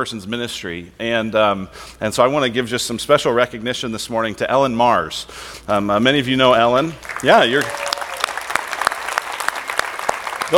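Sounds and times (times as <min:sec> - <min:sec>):
speech: 0:00.0 - 0:07.8
people clapping: 0:07.0 - 0:10.5.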